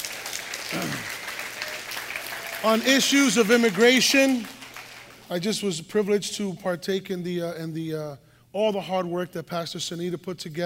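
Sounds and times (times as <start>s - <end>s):
church audience clapping: 0.0s - 5.4s
speech: 2.6s - 4.6s, 5.3s - 10.6s.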